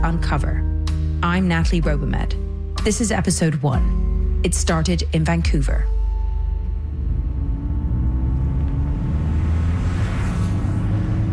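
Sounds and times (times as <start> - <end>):
speech: 0.0 - 5.9
car driving down a freeway from Los Angeles toward Long Beach, California: 5.0 - 11.3.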